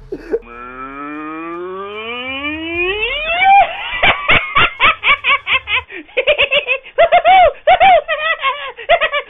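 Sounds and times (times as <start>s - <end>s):
laughter: 0.0s - 0.6s, 3.4s - 9.2s
cow mooing: 0.0s - 2.3s.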